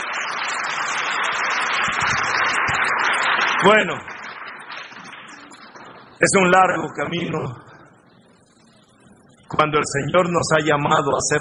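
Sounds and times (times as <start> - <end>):
crowd applause: 0.0 - 8.0
speech: 3.6 - 4.1, 6.2 - 7.6, 9.6 - 11.4.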